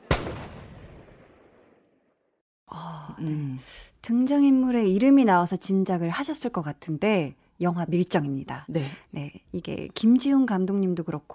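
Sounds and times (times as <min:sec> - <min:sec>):
gunshot in the film The Age of Shadows at Gyeongseong Station: 0:00.0 - 0:01.9
speech: 0:03.2 - 0:11.3.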